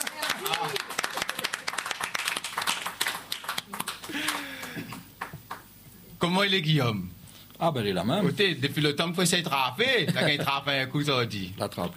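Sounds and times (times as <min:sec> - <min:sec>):
audience applause: 0:00.0 - 0:05.6
speech: 0:06.2 - 0:11.9.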